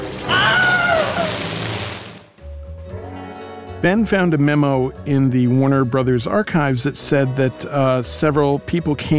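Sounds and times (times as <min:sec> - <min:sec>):
film scream of man dragged underwater by an alligator: 0:00.3 - 0:01.3
speech: 0:03.8 - 0:09.1.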